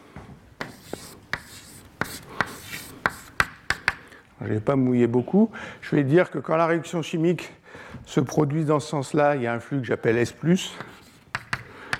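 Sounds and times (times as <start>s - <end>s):
writing during a lecture on chemical reaction kinetics: 0.6s - 4.0s, 10.8s - 11.9s
speech: 4.4s - 11.0s.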